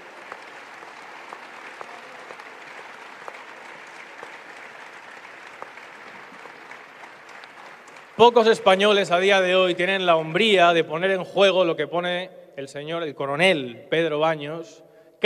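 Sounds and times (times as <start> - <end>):
audience applause: 0.0 - 9.3
speech: 8.2 - 15.2.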